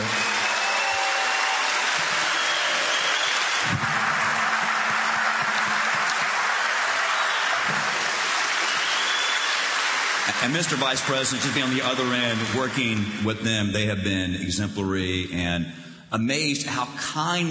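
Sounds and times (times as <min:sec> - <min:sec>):
audience applause: 0:00.0 - 0:13.2
speech: 0:10.4 - 0:17.4.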